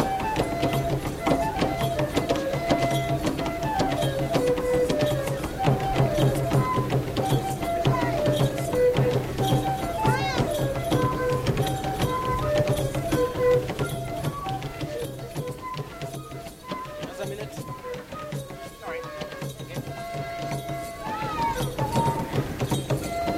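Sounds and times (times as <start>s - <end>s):
women performing traditional music from Kenya: 0.0s - 23.3s.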